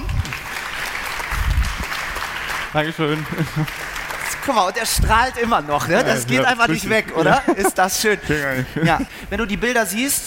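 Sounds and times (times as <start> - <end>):
audience applause: 0.0 - 6.6
speech: 2.7 - 10.2
laughter: 3.1 - 3.8, 5.1 - 9.4.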